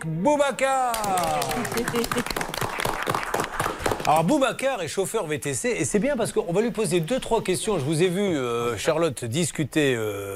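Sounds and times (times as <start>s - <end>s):
speech: 0.0s - 2.6s, 4.1s - 10.3s
crowd applause: 0.9s - 4.3s.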